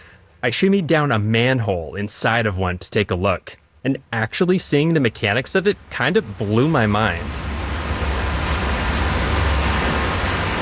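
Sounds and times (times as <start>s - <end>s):
speech: 0.4s - 7.5s
glacier meltwater pouring into an underground reservoir: 4.0s - 10.6s.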